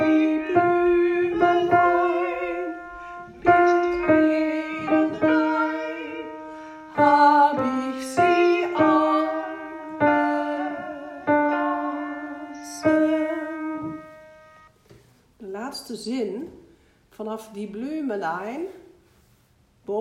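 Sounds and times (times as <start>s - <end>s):
alto voice singing: 0.0s - 14.7s.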